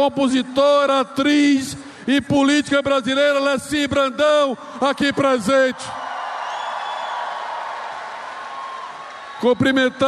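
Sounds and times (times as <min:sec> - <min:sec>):
speech: 0:00.0 - 0:06.0, 0:09.4 - 0:10.0
audience applause: 0:06.0 - 0:10.0.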